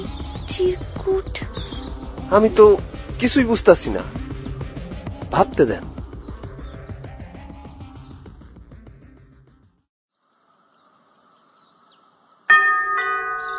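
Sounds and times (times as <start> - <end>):
speech: 0.5 - 4.2, 5.3 - 5.9
faulty doorbell chiming: 12.5 - 13.5.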